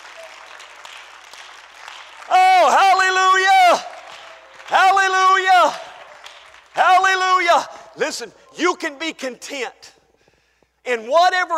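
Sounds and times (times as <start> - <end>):
crowd clapping: 0.0 - 8.0
speech: 8.0 - 10.0, 10.9 - 11.5.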